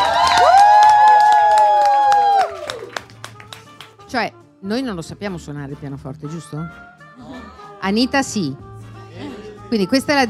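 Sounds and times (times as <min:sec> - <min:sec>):
audience cheering: 0:00.0 - 0:03.0
audience applauding: 0:00.0 - 0:04.0
speech: 0:04.1 - 0:10.2.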